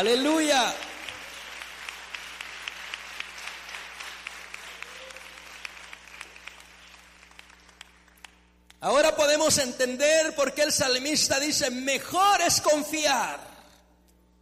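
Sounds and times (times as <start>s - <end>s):
speech: 0.0s - 0.9s, 8.8s - 13.5s
audience applauding: 0.4s - 8.5s.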